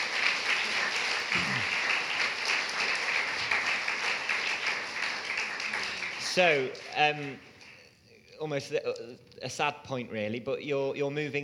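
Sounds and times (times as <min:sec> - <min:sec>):
audience applause: 0:00.0 - 0:07.4
speech: 0:06.4 - 0:07.5, 0:08.4 - 0:11.4.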